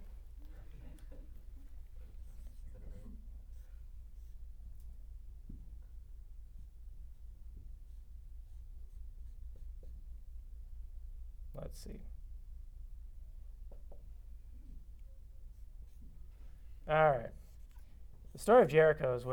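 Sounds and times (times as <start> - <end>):
steady low hum: 0.0 - 18.4
scratchy drawing strokes: 1.8 - 5.1, 7.6 - 10.1, 15.2 - 18.7
speech: 11.7 - 12.2, 16.9 - 17.4, 18.4 - 19.3.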